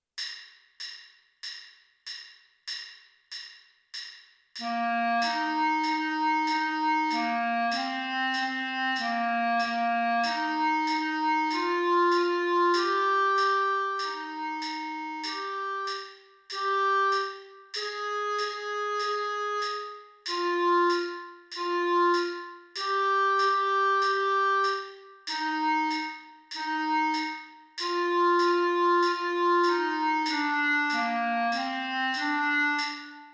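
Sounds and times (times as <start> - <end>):
clarinet: 4.6 - 33.3.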